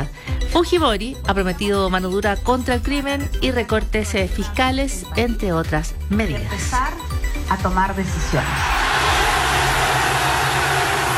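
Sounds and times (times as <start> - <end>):
speech: 0.6 - 6.9, 7.5 - 8.8
football fans erupting in celebration after England win at Wembley in London: 8.4 - 11.1.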